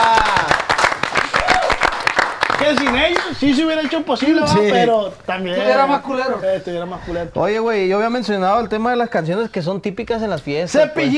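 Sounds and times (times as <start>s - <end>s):
audience applause: 0.0s - 4.4s
speech: 2.7s - 11.1s.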